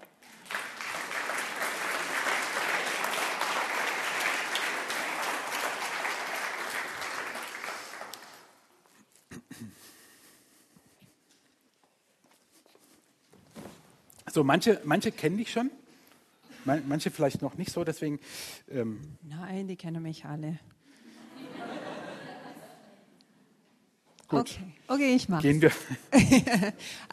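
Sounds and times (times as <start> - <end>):
audience applause: 0.0 - 8.7
speech: 14.3 - 15.8, 16.7 - 20.7, 24.3 - 27.1
laughter: 21.1 - 23.0, 25.7 - 26.8.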